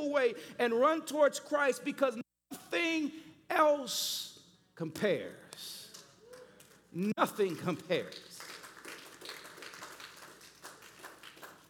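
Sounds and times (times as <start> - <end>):
speech: 0.0 - 5.8, 6.9 - 8.3
a few people clapping: 5.9 - 11.6.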